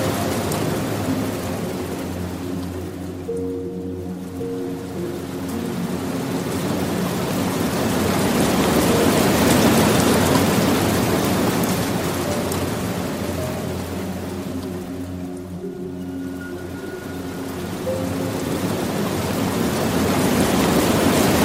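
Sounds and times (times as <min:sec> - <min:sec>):
low sustained piano notes: 0:00.0 - 0:21.4
soft water stream rushing: 0:00.0 - 0:21.4.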